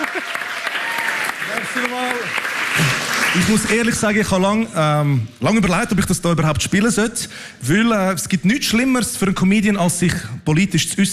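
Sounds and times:
voices calling out and cheering: 0.0s - 2.3s
audience applause: 0.0s - 4.2s
speech: 1.8s - 11.1s.

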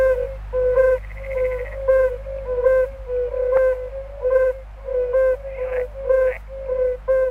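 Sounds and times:
yellow-bellied toads calling: 0.0s - 7.2s.

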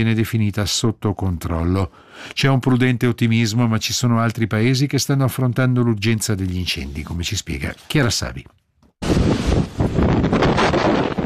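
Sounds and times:
speech: 0.0s - 10.4s
strong gusting wind on Crete: 9.0s - 11.2s.

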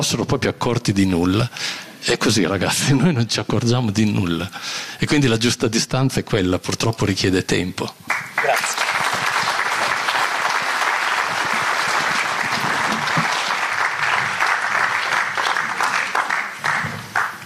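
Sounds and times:
speech: 0.0s - 8.8s
audience applause: 8.1s - 17.4s.

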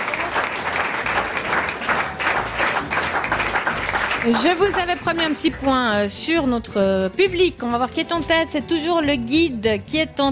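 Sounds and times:
audience applause: 0.0s - 5.7s
speech: 4.2s - 10.3s.

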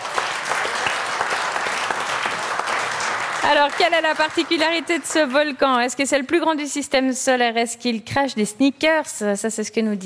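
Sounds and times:
audience applause: 0.0s - 5.6s
speech: 3.4s - 10.0s.

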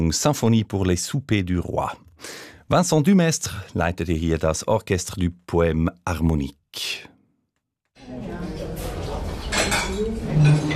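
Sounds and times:
speech: 0.0s - 7.1s
murmur of indistinct voices: 8.0s - 10.7s
cutlery and dishes clinking in a small restaurant: 8.5s - 10.7s.

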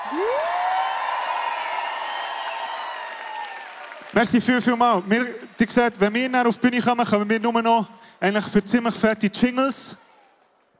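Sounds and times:
audience applause: 0.0s - 6.4s
speech: 4.1s - 10.0s.

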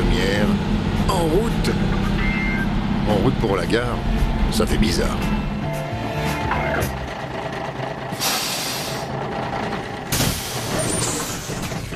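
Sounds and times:
bus engine idling: 0.0s - 11.9s
speech: 3.1s - 5.4s
bus air brakes hissing: 8.1s - 9.2s, 10.1s - 11.7s.

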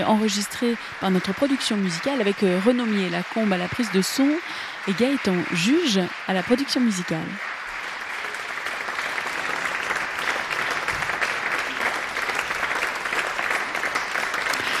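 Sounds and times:
speech: 0.0s - 7.6s
concert audience applause: 0.0s - 14.7s.

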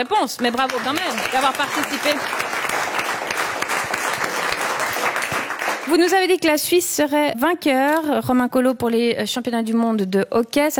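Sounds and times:
speech: 0.0s - 2.7s, 5.9s - 10.7s
audience applause: 0.4s - 6.0s.

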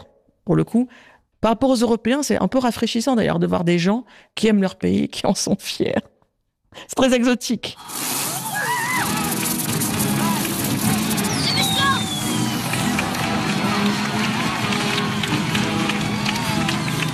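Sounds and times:
speech: 0.5s - 6.1s, 6.7s - 8.2s
joyful festive crowd: 8.1s - 17.1s
brass bands playing at a festive crowd: 9.0s - 17.1s.

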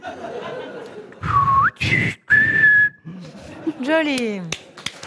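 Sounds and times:
laughter: 0.0s - 1.3s, 3.1s - 4.1s
person whistling in imitation of birdsong: 1.2s - 3.1s
speech: 3.9s - 4.6s.

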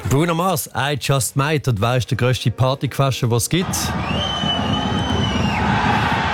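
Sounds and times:
speech: 0.2s - 4.6s
FC Aarau football fans cheering at an away match in Vaduz: 3.6s - 6.3s
high whistle-like tone: 4.0s - 5.8s.

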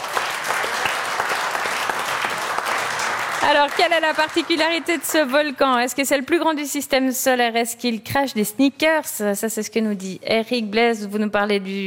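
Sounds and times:
audience applause: 0.0s - 5.6s
speech: 3.5s - 11.8s.

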